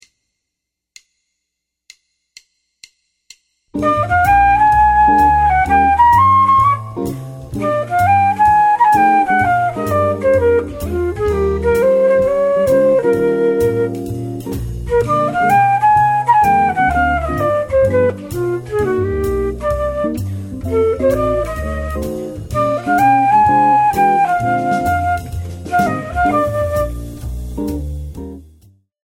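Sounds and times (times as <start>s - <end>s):
blues music: 3.7s - 28.8s.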